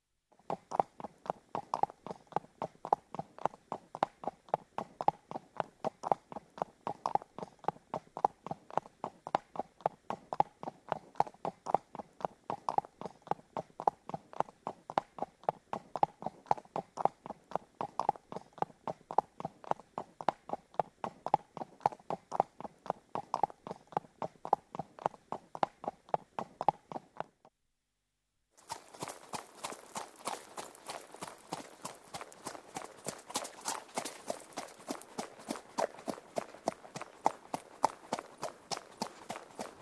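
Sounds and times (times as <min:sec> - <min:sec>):
horses galloping: 0:00.5 - 0:27.3, 0:28.6 - 0:39.8.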